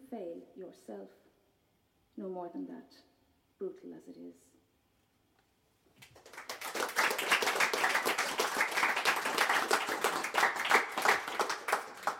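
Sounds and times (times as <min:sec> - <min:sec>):
speech: 0:00.1 - 0:01.3, 0:02.2 - 0:04.6
audience applause between poems: 0:06.1 - 0:12.1.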